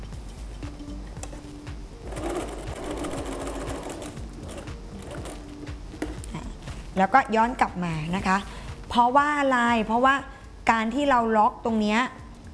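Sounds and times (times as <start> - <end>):
sewing machine stitching fabric for a bag: 2.0 - 5.5
speech: 7.0 - 12.2.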